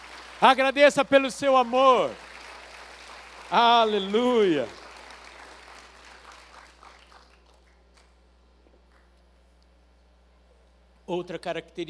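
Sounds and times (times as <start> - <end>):
audience applauding: 0.0 - 8.2
speech: 0.4 - 2.2, 3.5 - 4.8, 11.1 - 11.8.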